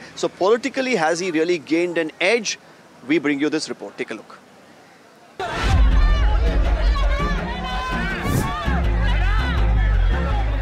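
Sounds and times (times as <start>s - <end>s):
speech: 0.2s - 4.4s
crowd of supporters cheering and shouting: 5.4s - 10.6s.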